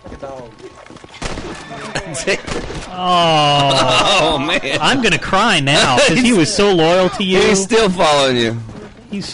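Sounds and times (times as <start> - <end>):
video game sounds: 0.1 - 8.9
speech: 0.2 - 9.3
video game gunfire shooting a horse: 1.2 - 3.5
laughter: 1.6 - 8.0.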